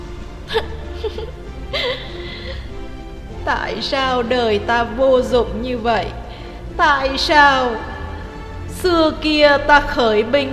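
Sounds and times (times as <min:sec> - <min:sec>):
speech: 0:00.5 - 0:01.4, 0:03.5 - 0:06.2, 0:06.8 - 0:07.9, 0:08.8 - 0:10.5
person sobbing, bursting into tears: 0:00.5 - 0:02.7.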